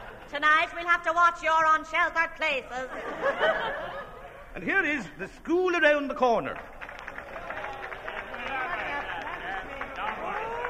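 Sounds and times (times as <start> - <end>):
speech: 0.4 - 4.0, 4.6 - 6.8
laughter: 2.8 - 4.6
large crowd applauding: 6.5 - 10.6.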